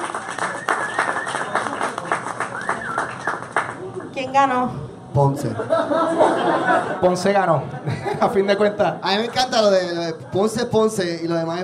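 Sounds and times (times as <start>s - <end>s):
audience applause: 0.0s - 4.1s
speech: 4.2s - 11.6s
laughter: 5.4s - 8.6s.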